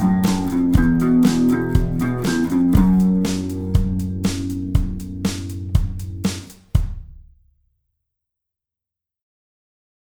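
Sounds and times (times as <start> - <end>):
guitar riff: 0.0 - 6.5.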